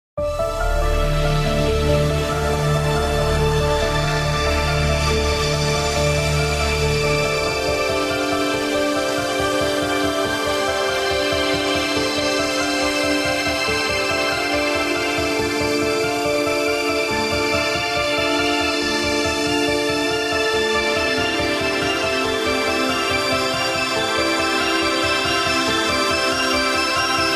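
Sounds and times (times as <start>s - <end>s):
mysterious royalty free music: 0.2s - 27.3s.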